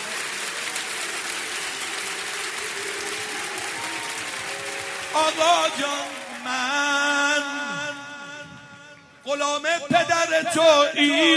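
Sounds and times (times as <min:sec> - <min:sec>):
Heydari rhythmic clapping from a religious gathering: 0:00.0 - 0:08.4
speech: 0:05.2 - 0:08.0, 0:09.3 - 0:11.3.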